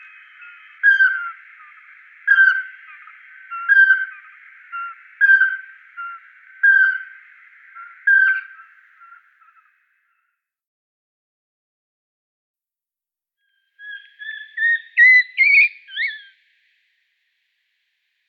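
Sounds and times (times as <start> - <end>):
Eurasian pygmy owl song in Luxembourg: 0.0 - 9.7, 13.5 - 16.4.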